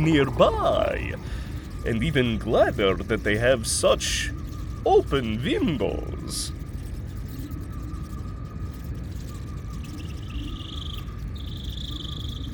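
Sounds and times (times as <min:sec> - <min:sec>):
speech: 0:00.0 - 0:06.6
steady low rumble: 0:00.0 - 0:06.7
New Zealand short-tailed bats chirping: 0:00.0 - 0:12.5.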